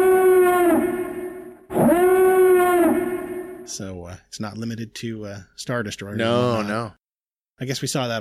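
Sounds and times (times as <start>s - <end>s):
Imperial klaxon alarm: 0.0s - 3.7s
speech: 3.7s - 7.0s, 7.6s - 8.1s.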